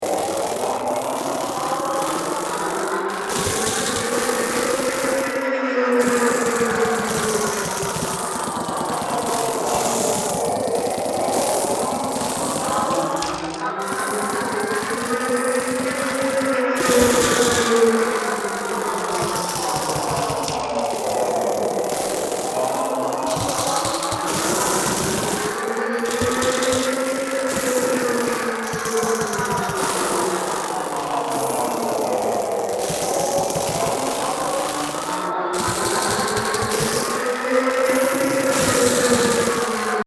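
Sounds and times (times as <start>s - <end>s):
crunching: 0.0s - 40.0s.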